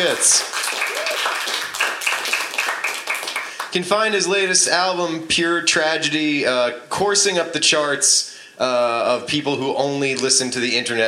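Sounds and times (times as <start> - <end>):
speech: 0.0 - 0.6, 3.7 - 11.0
audience applause: 0.0 - 3.8.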